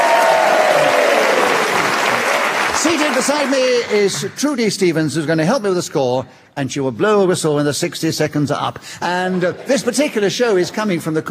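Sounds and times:
studio audience applause at a panel game show at the Corn Exchange: 0.0 - 4.6
speech: 3.0 - 11.3.

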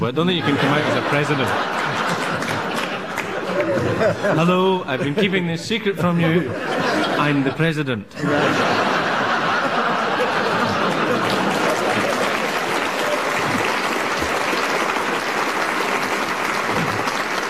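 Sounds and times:
speech: 0.0 - 2.2, 3.7 - 8.9
laughter: 0.2 - 17.4
audience applause: 0.5 - 4.1, 8.6 - 17.4.

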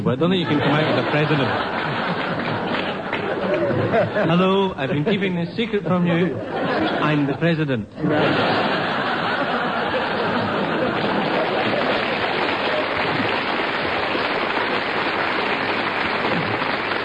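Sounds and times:
speech: 0.0 - 2.1, 3.7 - 8.6
laughter: 0.3 - 14.0
audience applause: 0.7 - 4.0, 8.6 - 17.0.

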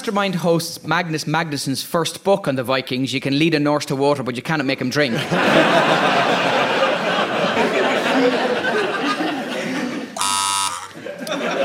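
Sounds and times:
speech: 0.0 - 6.7
crowd chatter and laughter: 5.2 - 11.6
loud harsh quiz show buzzer: 10.2 - 11.0.

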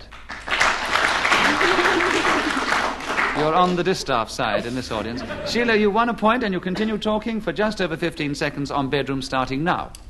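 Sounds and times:
studio audience clapping: 0.0 - 4.2
laughter: 1.3 - 6.0
speech: 3.4 - 10.0.

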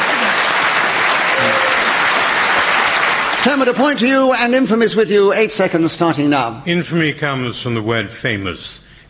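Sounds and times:
round of applause: 0.0 - 4.1
speech: 3.4 - 9.0.

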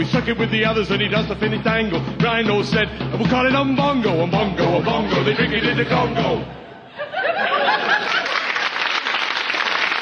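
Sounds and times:
speech: 0.0 - 7.5
small crowd laughing: 4.6 - 9.8
small crowd clapping: 7.6 - 10.0.

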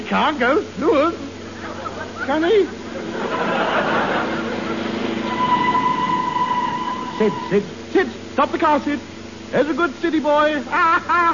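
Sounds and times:
speech: 0.1 - 1.3, 2.2 - 3.5, 7.2 - 11.3
laughter: 1.3 - 7.5, 10.6 - 11.3
approaching train at a level crossing: 3.1 - 7.5.

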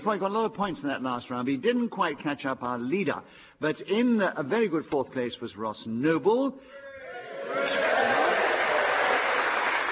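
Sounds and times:
speech: 0.0 - 6.8
audience applause: 7.4 - 9.9.

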